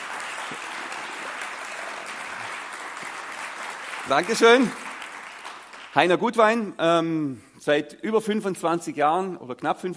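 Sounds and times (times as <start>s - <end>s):
sustained audience applause: 0.0s - 6.2s
speech: 0.5s - 0.7s, 4.0s - 4.8s, 6.0s - 9.9s.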